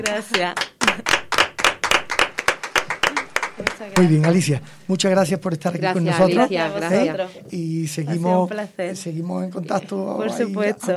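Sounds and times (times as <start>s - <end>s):
speech: 0.0s - 1.2s, 3.8s - 10.9s
small group clapping hands in a steady rhythm: 0.0s - 4.6s.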